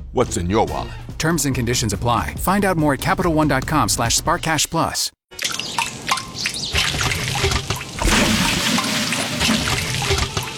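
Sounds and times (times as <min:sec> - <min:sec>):
speech: 0:00.1 - 0:05.5
water pouring and trickling: 0:05.3 - 0:10.5.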